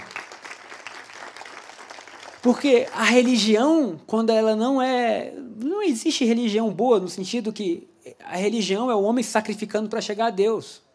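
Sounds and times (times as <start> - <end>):
audience applause: 0.0 - 3.3
speech: 2.4 - 10.8.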